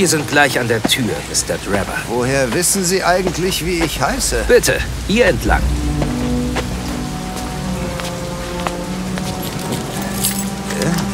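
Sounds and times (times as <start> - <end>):
speech: 0.0 - 6.1
steady rain: 0.0 - 11.1
keys jingling: 9.6 - 10.6.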